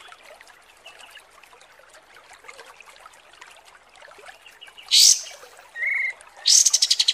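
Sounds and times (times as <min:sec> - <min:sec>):
kapas tembak chipping: 0:04.9 - 0:07.1.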